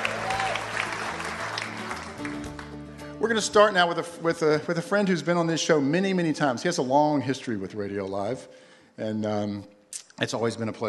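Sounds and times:
live audience applause at an evening show: 0:00.0 - 0:02.9
speech: 0:03.2 - 0:10.8.

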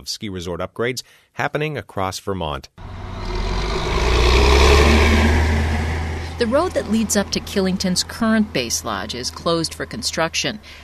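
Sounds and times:
speech: 0:00.0 - 0:03.0, 0:06.4 - 0:10.8
car engine droning passing slow-moving dump trucks at a Vermont ski resort construction site: 0:02.8 - 0:10.8.

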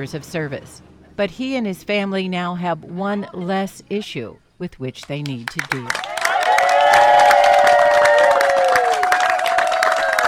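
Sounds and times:
speech: 0:00.0 - 0:06.1
crowd of neighbors cheering and clapping: 0:05.6 - 0:10.2.

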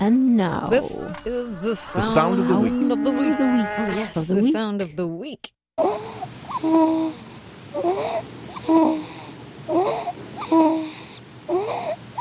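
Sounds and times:
speech: 0:00.0 - 0:09.1, 0:09.7 - 0:10.9
new baby snoring: 0:05.8 - 0:12.1.

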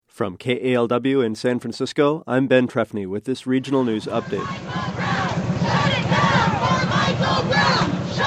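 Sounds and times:
speech: 0:00.2 - 0:04.9
protesters blocking an intersection at 42nd and International in Oakland chanting: 0:03.7 - 0:08.2.

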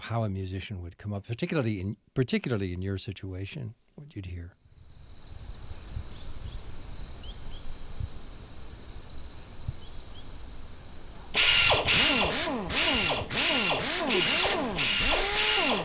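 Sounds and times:
speech: 0:00.1 - 0:04.6
pneumatic air tool bursts at tire shop: 0:11.3 - 0:15.8
steady high cricket-like chirring: 0:11.3 - 0:15.8.

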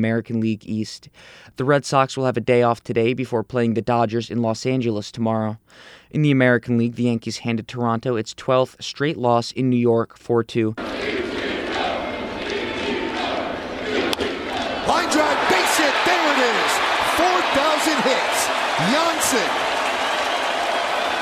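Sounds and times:
speech: 0:00.0 - 0:11.2
baseball crowd cheering: 0:10.8 - 0:21.1
sharp crack of Ichiro Suzuki's bat hitting his 4,000th hit: 0:10.8 - 0:21.1
piercing whistles from baseball crowd: 0:19.5 - 0:21.1.

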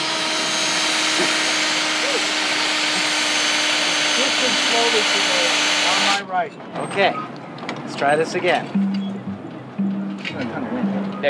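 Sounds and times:
drill drilling a hole: 0:00.0 - 0:06.2
speech: 0:04.8 - 0:07.3, 0:07.9 - 0:08.8, 0:10.3 - 0:11.2.

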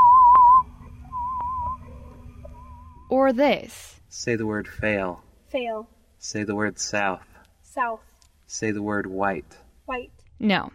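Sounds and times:
hearing-test tones from an audiology clinic at Utah State University: 0:00.0 - 0:03.2
soft low hum: 0:00.0 - 0:10.4
speech: 0:03.1 - 0:10.7.

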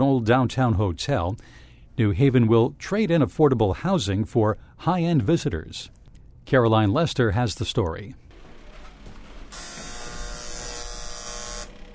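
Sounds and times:
speech: 0:00.0 - 0:08.2
electric buzz of the oldest hand-operated elevator in Connecticut, Duncan Hotel: 0:08.3 - 0:11.9.

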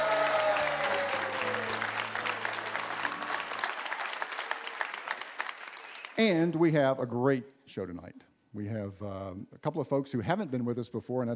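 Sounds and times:
audience applause: 0:00.0 - 0:06.4
speech: 0:06.2 - 0:11.3.

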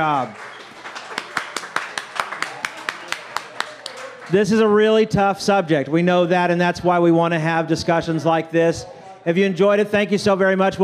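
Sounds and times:
speech: 0:00.0 - 0:00.5, 0:04.3 - 0:10.8
audience applause: 0:00.0 - 0:04.7.

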